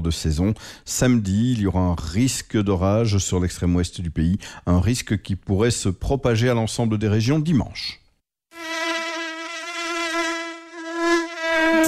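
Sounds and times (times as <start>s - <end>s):
speech: 0.0s - 8.0s
mosquito buzzing: 8.5s - 11.8s.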